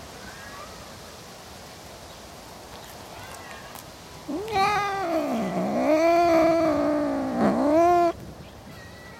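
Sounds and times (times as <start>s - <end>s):
cat caterwauling: 4.3s - 8.2s.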